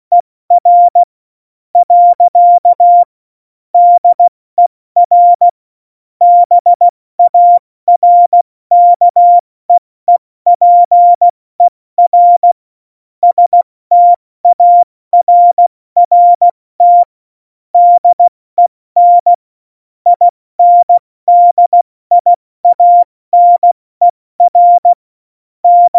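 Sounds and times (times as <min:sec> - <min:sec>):
CW Morse code beeps: 0:00.1 - 0:01.1, 0:01.8 - 0:03.1, 0:03.8 - 0:04.3, 0:05.0 - 0:05.6, 0:06.2 - 0:09.4, 0:10.1 - 0:12.6, 0:13.2 - 0:17.1, 0:17.8 - 0:18.3, 0:19.0 - 0:19.4, 0:20.1 - 0:23.8, 0:24.4 - 0:25.0, 0:25.6 - 0:25.9.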